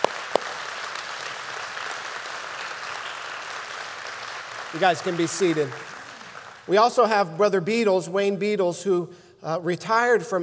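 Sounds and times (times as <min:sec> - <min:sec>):
crowd applauding: 0:00.0 - 0:07.1
speech: 0:04.7 - 0:05.9, 0:06.7 - 0:10.4.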